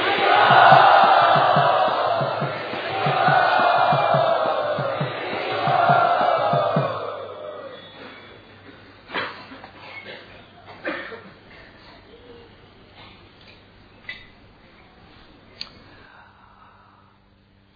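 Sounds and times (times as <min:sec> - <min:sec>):
audience loudly cheering to welcome a speaker: 0:00.0 - 0:08.5
rhythmic low pulses: 0:00.0 - 0:08.6.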